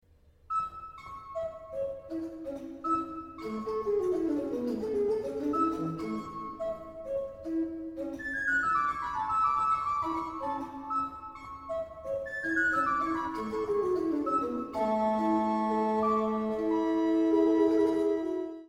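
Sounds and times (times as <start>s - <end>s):
keyboard toccata: 0.5s - 18.6s.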